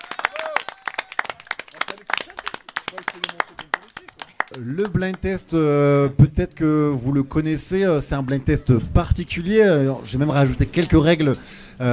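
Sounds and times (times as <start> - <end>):
audience applause: 0.0 - 5.2
speech: 2.9 - 11.9.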